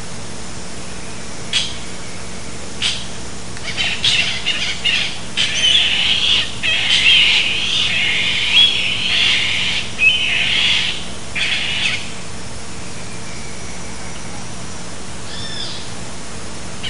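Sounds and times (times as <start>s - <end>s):
low hum: 0.0s - 16.8s
bird rasping calls: 1.5s - 1.9s, 2.8s - 14.6s, 15.2s - 16.0s.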